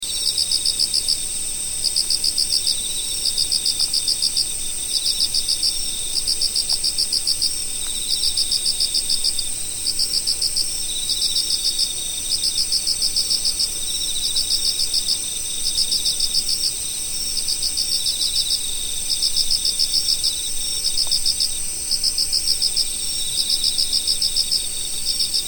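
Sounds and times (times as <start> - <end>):
insects chirping in autumn: 0.0 - 25.4.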